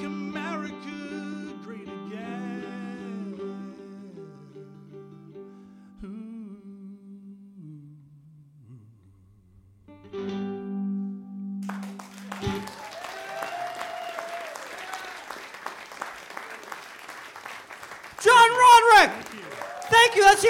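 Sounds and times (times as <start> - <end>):
crowd applauding: 11.6 - 20.4
person speaking loudly: 18.2 - 19.2, 19.9 - 20.4.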